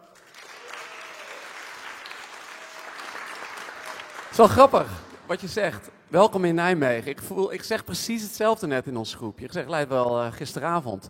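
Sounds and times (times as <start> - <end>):
crowd applauding: 0.0 - 5.5
speech: 4.4 - 11.0.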